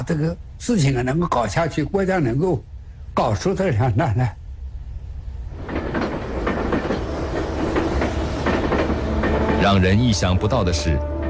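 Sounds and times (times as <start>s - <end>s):
speech: 0.0s - 4.4s, 9.6s - 11.1s
passenger train rumbling along the rails: 0.0s - 11.2s
train wheels clacking over rail joints: 5.5s - 10.5s.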